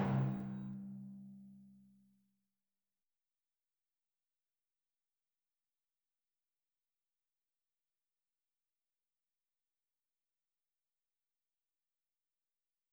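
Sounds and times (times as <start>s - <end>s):
bow exit music: 0.0s - 1.0s.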